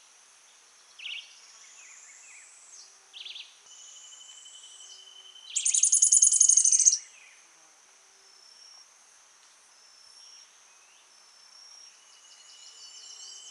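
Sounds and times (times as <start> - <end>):
Cranioleuca obsoleta song in Santa Ines, Departamento Itapúa: 0.5 - 7.5, 10.2 - 13.5.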